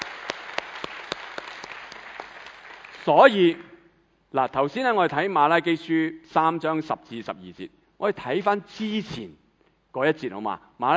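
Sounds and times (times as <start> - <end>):
audience applause: 0.0 - 3.1
speech: 3.0 - 3.7, 4.3 - 9.4, 10.0 - 10.9.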